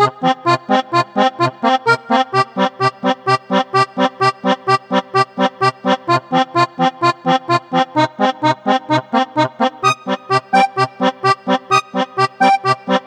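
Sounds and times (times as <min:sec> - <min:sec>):
accordion music: 0:00.0 - 0:13.0
chiptune music: 0:09.8 - 0:13.0.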